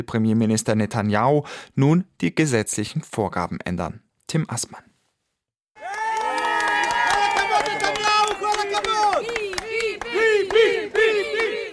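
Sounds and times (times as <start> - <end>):
speech: 0.0 - 4.9
enthusiastic applause from residents of South Tel Aviv: 5.8 - 11.7.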